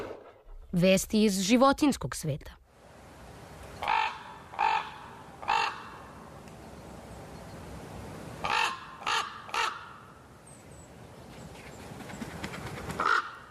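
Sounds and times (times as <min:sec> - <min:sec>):
speech: 0:00.8 - 0:02.6
thick-billed raven cawing: 0:03.8 - 0:06.2, 0:08.4 - 0:10.2, 0:13.0 - 0:13.4.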